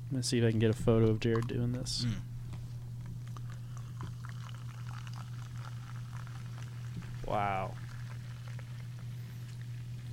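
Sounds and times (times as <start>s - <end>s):
low hum: 0.0s - 10.1s
speech: 0.1s - 2.3s, 7.3s - 7.8s
soda being poured into a glass: 3.2s - 10.1s.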